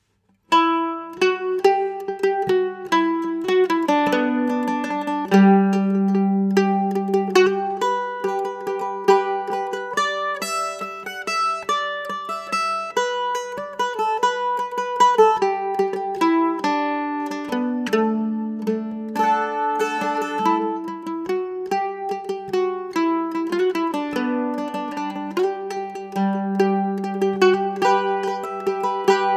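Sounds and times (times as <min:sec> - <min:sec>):
mandolin waltz: 0:00.5 - 0:29.3.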